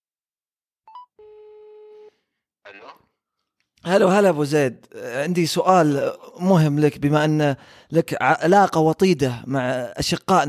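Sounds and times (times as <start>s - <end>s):
electronic phone beep and two-pitch ring tone: 0.9s - 2.1s
speech: 2.7s - 3.1s, 3.8s - 10.4s.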